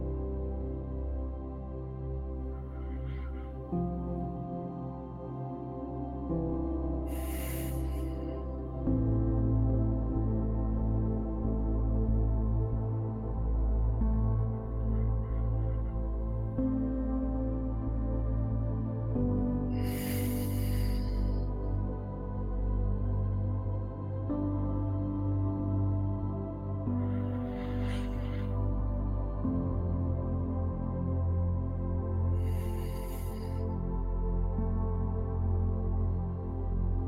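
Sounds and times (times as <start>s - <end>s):
soft sustained musical drone: 0.0s - 37.0s
slow deep breathing in and out during a guided breathing exercise: 2.4s - 4.9s, 6.8s - 8.8s, 19.6s - 22.7s, 26.8s - 29.4s, 32.3s - 34.0s.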